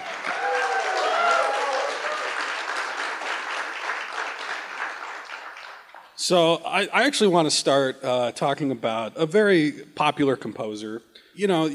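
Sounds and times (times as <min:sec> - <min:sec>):
faint cheers: 0:00.0 - 0:02.4
audience applause: 0:00.0 - 0:06.2
speech: 0:06.2 - 0:11.7.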